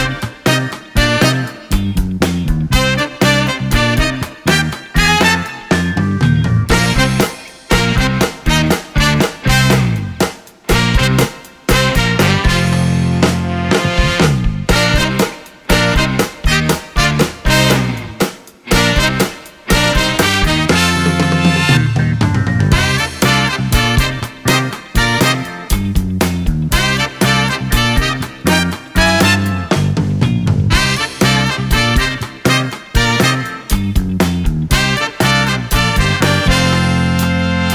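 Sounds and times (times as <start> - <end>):
concert backing track music: 0.0 - 37.7.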